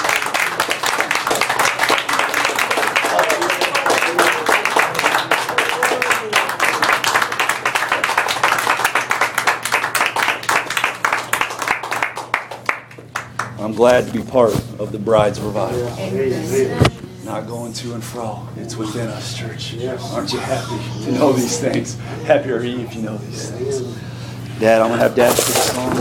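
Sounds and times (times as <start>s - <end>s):
audience clapping: 0.0s - 13.6s
speech: 13.8s - 25.9s.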